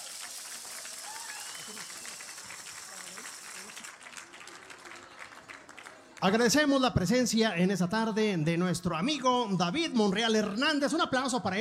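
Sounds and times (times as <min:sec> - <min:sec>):
crowd applause: 0:00.0 - 0:06.4
speech: 0:06.2 - 0:11.5.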